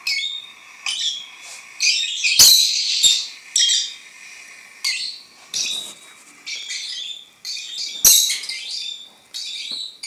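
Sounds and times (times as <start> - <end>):
lovebird twittering song: 0.0 - 4.0, 4.8 - 10.0.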